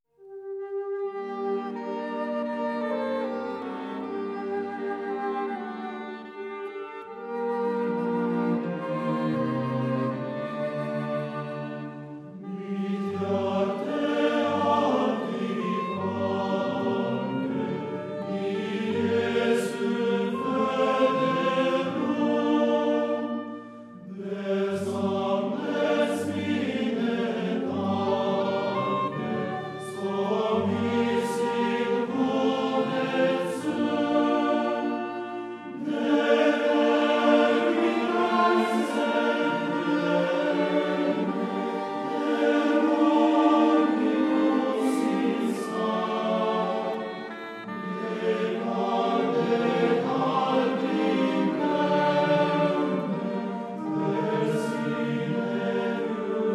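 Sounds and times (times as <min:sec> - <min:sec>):
Lithuanian Christmas carols: 0:00.2 - 0:56.5.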